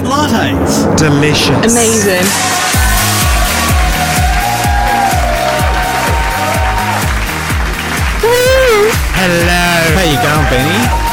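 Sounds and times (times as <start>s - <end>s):
speech: 0.1s - 2.7s, 9.2s - 11.0s
audience applause in a standing ovation: 2.3s - 11.1s.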